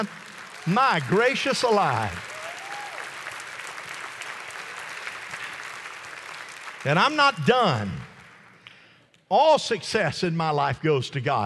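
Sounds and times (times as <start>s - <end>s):
speech: 0.0s - 2.3s, 6.8s - 8.0s, 9.3s - 11.4s
audience applause: 0.0s - 8.6s.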